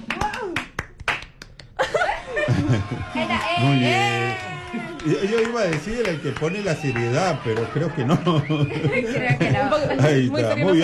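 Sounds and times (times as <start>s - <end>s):
applause: 0.0s - 1.8s, 2.7s - 8.6s
laughter: 1.8s - 10.8s
speech: 2.7s - 10.8s.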